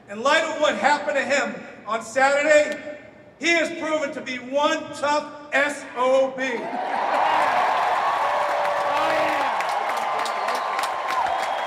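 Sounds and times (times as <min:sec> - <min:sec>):
speech: 0:00.1 - 0:07.2
crowd applause at convention: 0:06.6 - 0:11.6.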